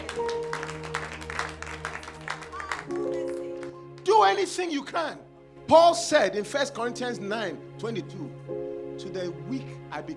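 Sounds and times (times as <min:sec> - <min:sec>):
audience clapping: 0:00.0 - 0:04.6
speech: 0:04.3 - 0:08.5, 0:09.1 - 0:10.1.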